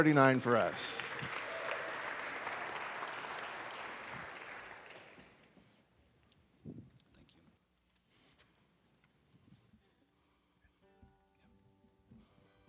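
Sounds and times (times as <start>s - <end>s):
speech: 0.0s - 1.4s
audience applauding to welcome a singer: 0.4s - 5.5s.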